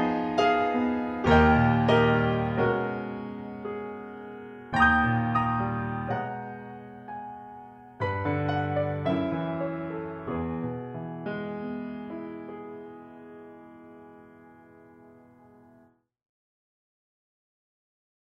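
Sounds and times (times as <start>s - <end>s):
cinematic grand piano: 0.0s - 16.0s.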